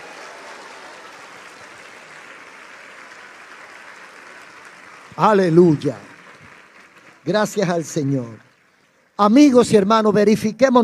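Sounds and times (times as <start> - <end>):
audience applauding: 0.0 - 9.0
speech: 5.2 - 6.1, 7.2 - 8.4, 9.2 - 10.8.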